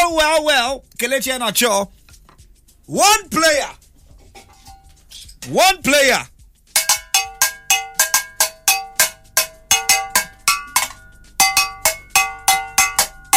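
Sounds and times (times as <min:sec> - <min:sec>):
speech: 0:00.1 - 0:02.0, 0:02.9 - 0:03.8, 0:05.4 - 0:06.3
bell clanging: 0:06.8 - 0:13.3.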